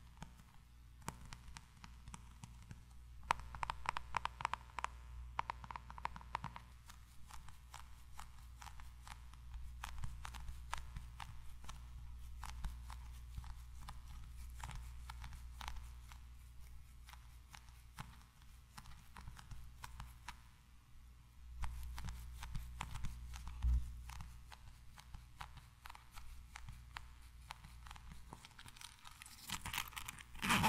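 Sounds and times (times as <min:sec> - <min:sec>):
constant low hum: 0:00.0 - 0:30.6
tiny mic triggers crisp taps, clicks and scratches: 0:23.4 - 0:24.2.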